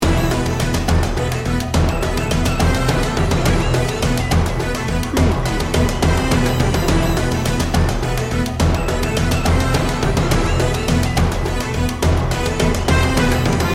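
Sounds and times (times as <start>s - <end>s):
battle music loop: 0.0s - 13.7s.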